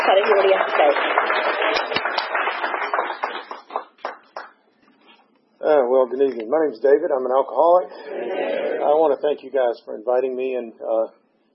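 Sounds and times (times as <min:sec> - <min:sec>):
audience applause: 0:00.0 - 0:04.5
speech: 0:06.2 - 0:11.2.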